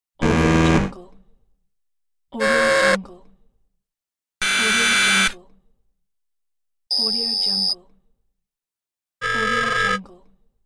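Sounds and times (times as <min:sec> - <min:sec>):
quiz buzzer: 0:00.2 - 0:00.9, 0:04.4 - 0:05.4, 0:06.9 - 0:07.8, 0:09.2 - 0:10.0.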